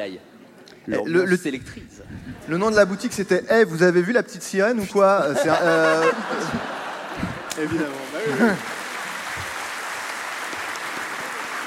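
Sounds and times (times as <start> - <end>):
speech: 0.0 - 8.8
laughter: 4.8 - 9.5
applause: 7.3 - 11.6.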